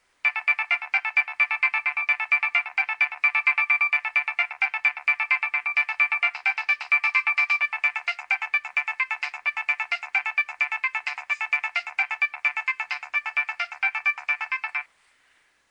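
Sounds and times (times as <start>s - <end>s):
Nokia 3100 ringtone: 0.2s - 14.9s.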